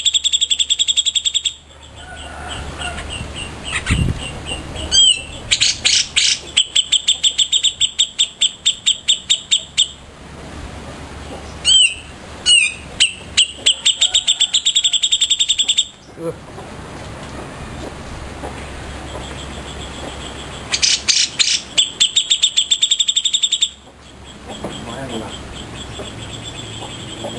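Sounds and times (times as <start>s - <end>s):
grey-cheeked bulbul singing tutor song: 0.0s - 10.1s, 11.2s - 16.8s, 18.2s - 27.3s.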